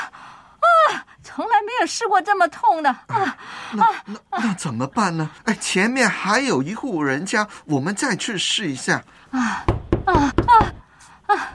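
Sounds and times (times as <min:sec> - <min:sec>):
speech: 0:01.4 - 0:11.5
loud knocking on a door: 0:09.7 - 0:10.8.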